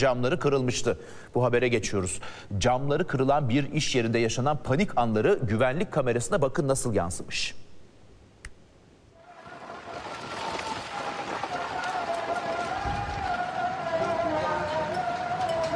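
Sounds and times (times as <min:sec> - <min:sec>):
speech: 0:00.0 - 0:07.6
heavy rain in Malatya: 0:09.1 - 0:15.7
strong wind in Malatya: 0:09.2 - 0:15.7.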